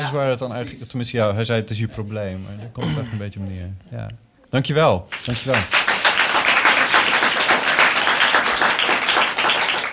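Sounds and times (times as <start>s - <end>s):
speech: 0.1s - 5.9s
audience clapping for a storyteller: 5.1s - 9.9s.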